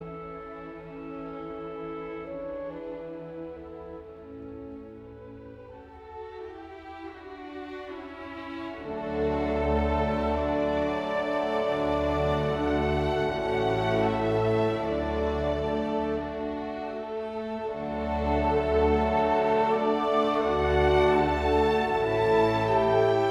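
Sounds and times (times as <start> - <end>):
clarinet: 0.0 - 23.2.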